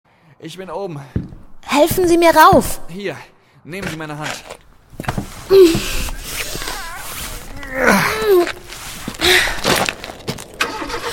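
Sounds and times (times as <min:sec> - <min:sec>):
speech: 0:00.4 - 0:04.6, 0:05.5 - 0:06.0, 0:07.7 - 0:08.6
car engine starting: 0:10.6 - 0:11.1.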